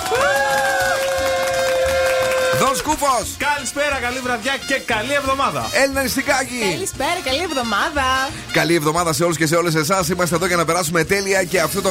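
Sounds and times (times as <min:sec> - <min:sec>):
crowd applauding: 0:00.0 - 0:03.2
speech: 0:02.6 - 0:11.8.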